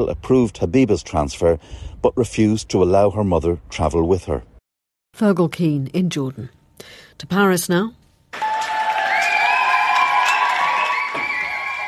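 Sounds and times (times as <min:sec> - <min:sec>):
speech: 0:00.0 - 0:04.5, 0:05.1 - 0:08.4
crowd cheering and shouting outside a court: 0:08.4 - 0:11.8.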